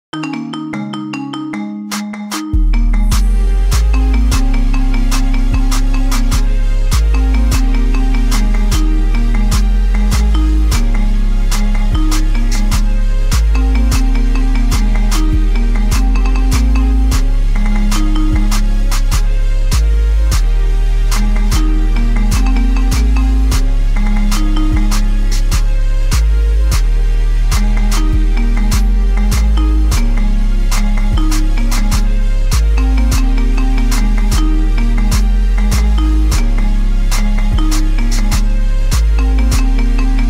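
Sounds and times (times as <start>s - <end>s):
marimba: 0.1s - 40.2s.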